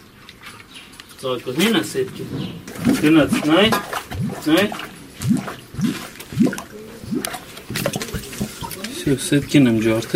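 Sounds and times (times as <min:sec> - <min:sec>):
speech: 0:01.2 - 0:06.6, 0:09.1 - 0:10.1
water gushing out of an opened leaking pipe in a flooded home: 0:02.7 - 0:09.5.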